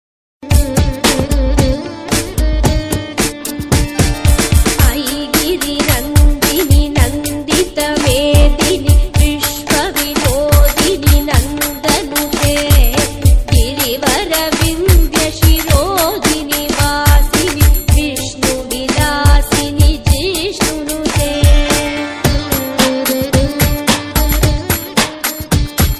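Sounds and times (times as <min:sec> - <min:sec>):
devotional morning hymn remix: 0:00.5 - 0:25.9.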